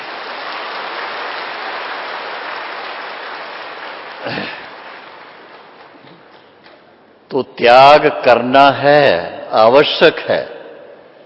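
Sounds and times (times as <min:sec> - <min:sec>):
audience clapping: 0:00.0 - 0:06.8
speech: 0:04.2 - 0:04.6, 0:07.3 - 0:10.5.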